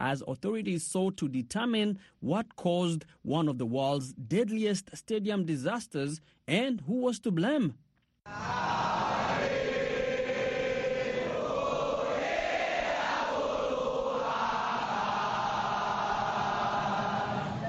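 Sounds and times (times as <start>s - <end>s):
speech: 0.0s - 9.6s
crowd of mourners singing at a candlelight vigil in Jakarta Indonesia: 8.3s - 17.6s.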